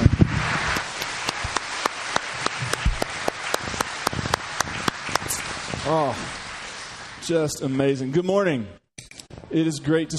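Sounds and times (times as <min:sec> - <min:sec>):
church audience at Morgantown Community Church applauding its band and singers: 0:00.0 - 0:08.0
speech: 0:05.9 - 0:06.4, 0:07.2 - 0:08.8, 0:09.5 - 0:10.1.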